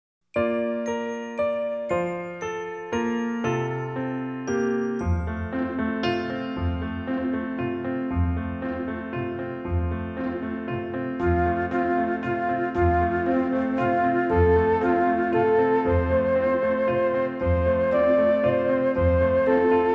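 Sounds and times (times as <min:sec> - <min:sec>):
instrumental music: 0:00.3 - 0:19.9.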